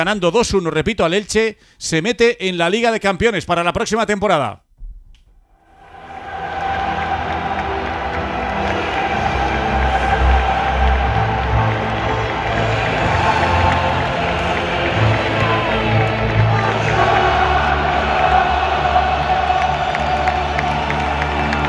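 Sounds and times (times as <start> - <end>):
speech: 0.0 - 4.6
Real Betis supporters singing an anthem at La Cartuja: 5.7 - 21.6.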